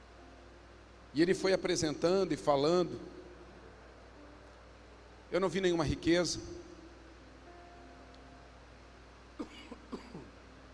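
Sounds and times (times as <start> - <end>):
faint steady hum: 0.0 - 10.7
speech: 1.2 - 3.2, 5.3 - 6.7
dry coughs: 9.4 - 10.3.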